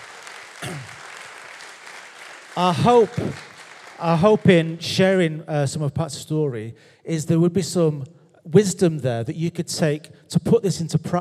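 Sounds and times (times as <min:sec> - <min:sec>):
audience applause: 0:00.0 - 0:04.8
speech: 0:02.6 - 0:11.2.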